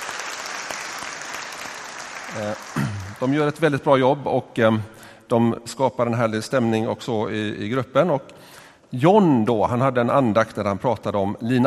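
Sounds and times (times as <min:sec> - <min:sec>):
audience applause: 0:00.0 - 0:03.4
speech: 0:02.3 - 0:11.6.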